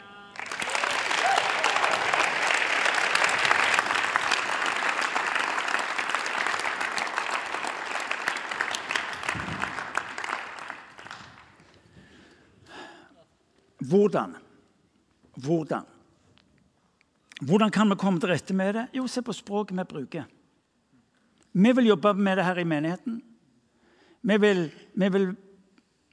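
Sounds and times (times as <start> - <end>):
audience applause: 0.3 - 11.8
speech: 13.9 - 14.4, 15.4 - 15.9, 17.4 - 20.4, 21.6 - 23.2, 24.2 - 25.4.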